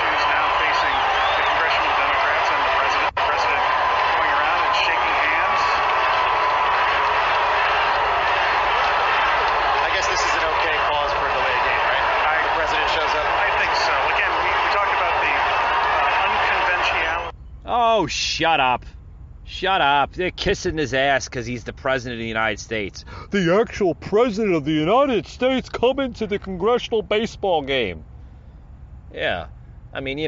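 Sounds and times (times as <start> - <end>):
crowd booing: 0.0 - 17.3
speech: 18.0 - 19.0, 19.6 - 28.1, 29.1 - 30.2.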